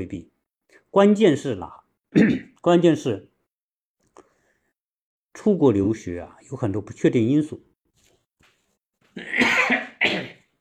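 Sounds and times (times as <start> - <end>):
speech: 0.0 - 0.3, 0.9 - 3.3, 5.4 - 7.7
cough: 2.1 - 2.6, 9.2 - 10.5.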